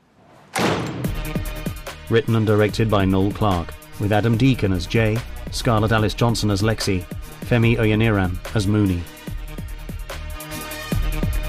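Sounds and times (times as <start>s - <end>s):
door closing: 0.1s - 1.4s
speech: 2.1s - 9.2s.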